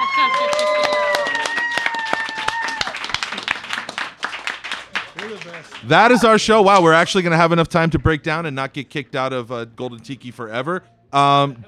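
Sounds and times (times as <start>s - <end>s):
high whoops and cheers: 0.0s - 3.1s
audience applause: 0.0s - 6.9s
speech: 5.8s - 11.6s.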